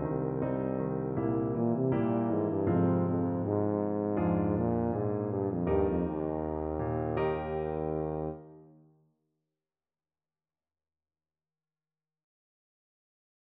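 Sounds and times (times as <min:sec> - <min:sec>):
tuba playing: 0:00.0 - 0:08.7.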